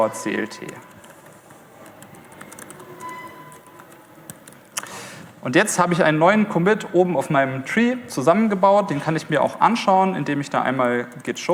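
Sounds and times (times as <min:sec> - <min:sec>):
speech: 0:00.0 - 0:00.9, 0:05.4 - 0:11.5
typing a Git commit message on a laptop keyboard: 0:00.0 - 0:05.3.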